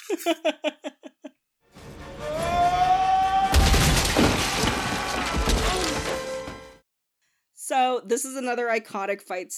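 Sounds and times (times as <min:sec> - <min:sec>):
speech: 0:00.1 - 0:00.8, 0:08.0 - 0:09.5
body headbutting through drywall: 0:01.8 - 0:06.8
man screaming: 0:02.1 - 0:06.2.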